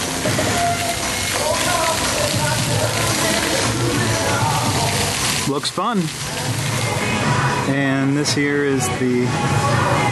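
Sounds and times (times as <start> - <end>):
water spraying and splashing at a kids' splash pad area: 0.0 - 7.7
speech: 5.5 - 6.6, 7.7 - 9.8.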